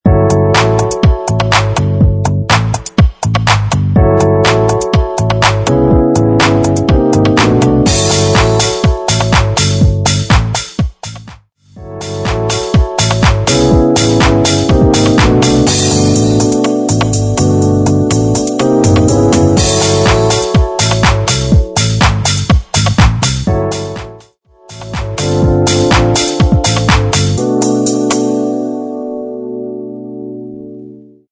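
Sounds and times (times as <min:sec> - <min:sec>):
123 BPM house music: 0:00.0 - 0:29.0.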